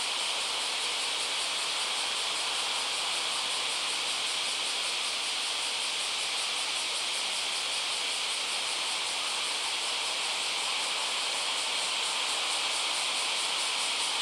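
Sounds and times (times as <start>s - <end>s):
cicada call: 0.0s - 14.2s.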